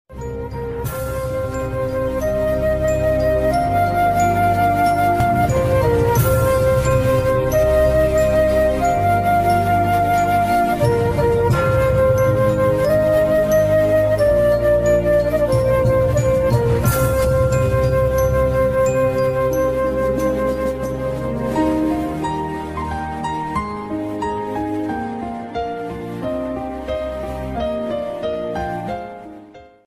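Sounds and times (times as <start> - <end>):
ringtone background music: 0.1 - 29.8.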